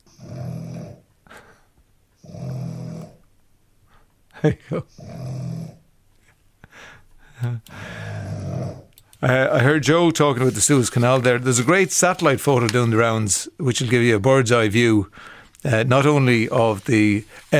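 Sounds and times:
5-month-old bulldog snoring and grunting: 0.0 - 1.5, 2.2 - 3.3, 4.7 - 5.9, 7.9 - 8.9
speech: 4.4 - 5.2, 9.2 - 17.5.

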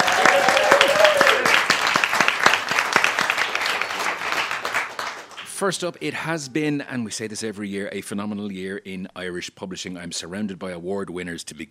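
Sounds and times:
audience applause: 0.0 - 5.6
speech: 5.6 - 11.7.

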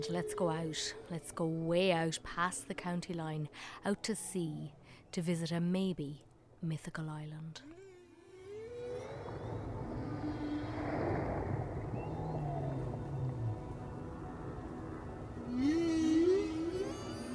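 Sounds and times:
humpback whale song: 0.0 - 1.3, 7.6 - 17.3
speech: 0.0 - 7.8
watery rumble: 8.4 - 17.3.

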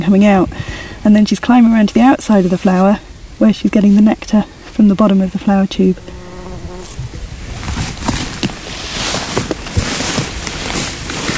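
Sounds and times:
speech: 0.1 - 6.2
bumblebee buzz-pollinating a flower: 5.9 - 9.8.

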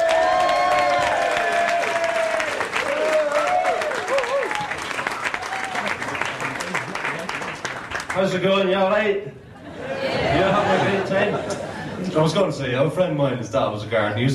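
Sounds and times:
audience whoops and raised voices: 0.0 - 6.0
audience clapping to welcome a stand-up comedian: 0.0 - 8.7
speech: 8.2 - 9.4, 12.2 - 14.3
laughter: 9.5 - 12.4.

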